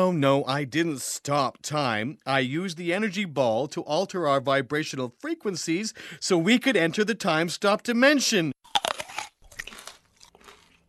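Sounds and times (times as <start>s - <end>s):
speech: 0.0s - 8.9s
biting and chewing a candy apple: 8.6s - 10.8s.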